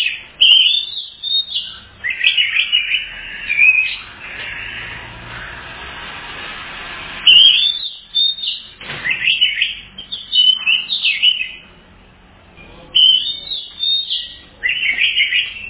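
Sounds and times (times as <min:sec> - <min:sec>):
Oriental magpie-robin whistled phrases: 0:00.0 - 0:04.1, 0:07.2 - 0:11.6, 0:12.6 - 0:15.6.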